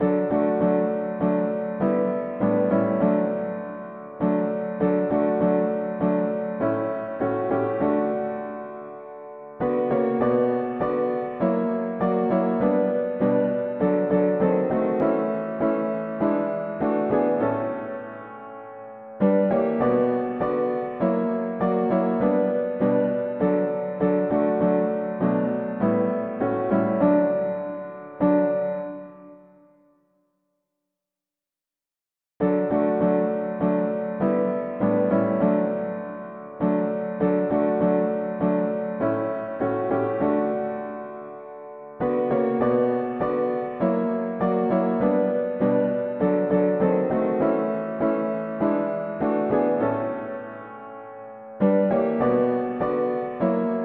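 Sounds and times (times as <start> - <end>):
mono piano playing hymns: 0.0 - 29.7, 32.4 - 53.8.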